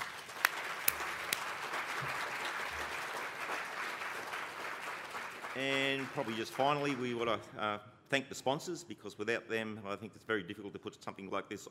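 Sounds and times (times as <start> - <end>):
audience applause: 0.0 - 7.2
speech: 5.6 - 11.6.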